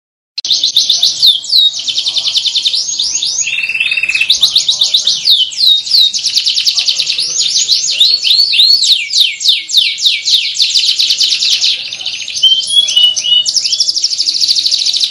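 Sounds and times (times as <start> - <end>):
Atlantic canary singing: 0.4 - 15.0.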